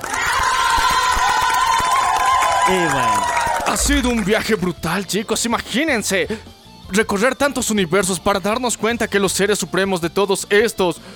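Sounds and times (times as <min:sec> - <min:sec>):
crowd applause and cheering: 0:00.0 - 0:04.8
speech: 0:02.7 - 0:11.1.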